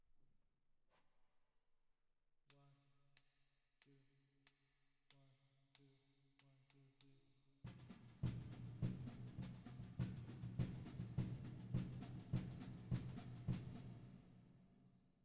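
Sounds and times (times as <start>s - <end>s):
drums with reverb: 7.7s - 14.2s.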